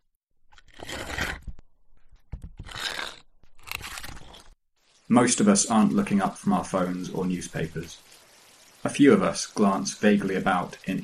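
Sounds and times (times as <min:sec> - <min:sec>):
dull scraping sound: 0:00.5 - 0:04.6
speech: 0:05.1 - 0:08.1, 0:08.8 - 0:11.0.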